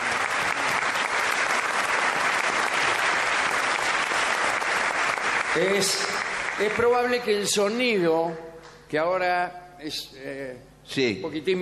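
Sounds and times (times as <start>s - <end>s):
audience applause: 0.0s - 7.3s
speech: 5.6s - 11.6s.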